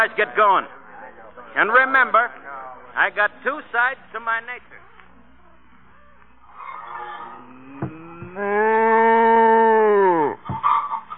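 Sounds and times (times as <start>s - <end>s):
speech: 0.0s - 0.8s, 1.5s - 2.4s, 3.0s - 4.9s, 8.4s - 9.4s
cow mooing in an enclosed space: 6.6s - 10.4s.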